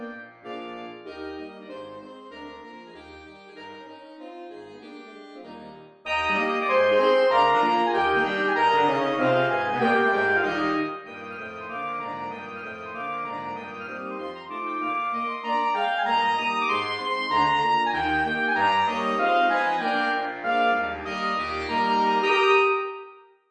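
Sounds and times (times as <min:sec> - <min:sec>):
saxophone: 0:06.1 - 0:11.2, 0:14.2 - 0:23.3.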